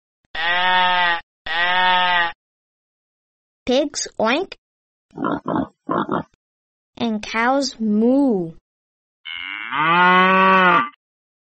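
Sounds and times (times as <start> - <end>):
sheep bleating: 0.4 - 2.4
speech: 3.7 - 6.3, 7.0 - 8.6, 9.4 - 11.0.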